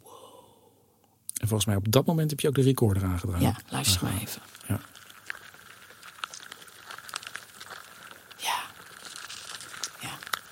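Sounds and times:
speech: 1.5 - 5.0
hundreds of ants crawling around: 3.6 - 10.5.

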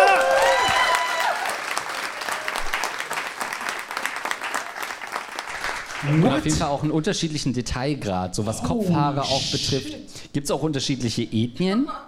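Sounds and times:
audience clapping: 0.0 - 6.8
speech: 6.0 - 12.0.

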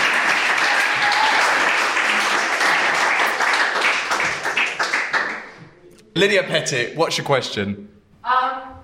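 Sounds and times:
audience applause: 0.0 - 5.6
speech: 6.2 - 8.4.

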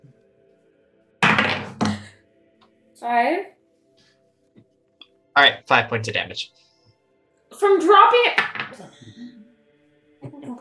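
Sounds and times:
dice rolled onto table: 1.2 - 2.0, 8.3 - 8.8
speech: 3.0 - 3.6, 5.4 - 6.6, 7.5 - 9.2.

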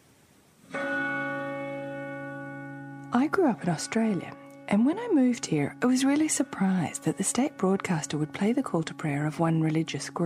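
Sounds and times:
church bells ringing: 1.3 - 8.4
speech: 3.1 - 10.2.

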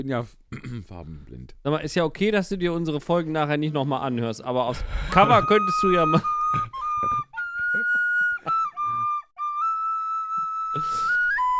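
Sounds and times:
speech: 0.0 - 6.7
nose flute melody: 5.0 - 11.5
laughter: 5.1 - 9.2.

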